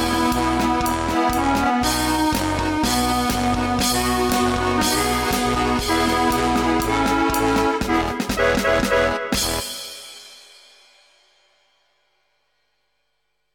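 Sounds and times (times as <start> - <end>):
polka music: 0.0 - 10.2.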